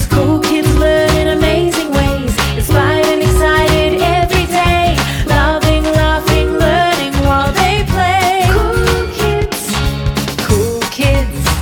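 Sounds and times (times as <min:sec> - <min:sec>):
jingle: 0:00.1 - 0:11.6.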